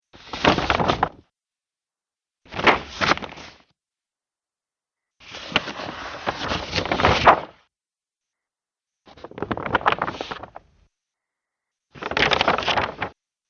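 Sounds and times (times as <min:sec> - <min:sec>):
war map paper movement: 0:00.2 - 0:01.2, 0:02.5 - 0:03.7, 0:05.2 - 0:07.6, 0:09.1 - 0:10.7, 0:11.9 - 0:13.2.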